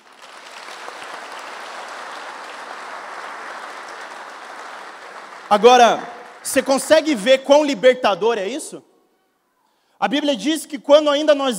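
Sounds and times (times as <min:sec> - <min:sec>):
audience applause: 0:00.0 - 0:07.2
speech: 0:05.5 - 0:08.9, 0:10.0 - 0:11.5.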